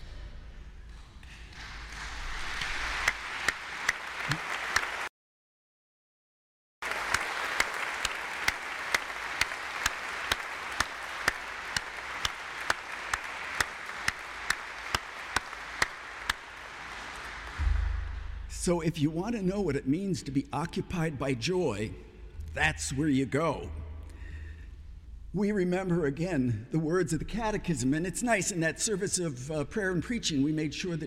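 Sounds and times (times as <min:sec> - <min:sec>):
audience applause: 0:01.5 - 0:05.1, 0:06.8 - 0:17.6
speech: 0:18.6 - 0:23.8, 0:25.3 - 0:31.0.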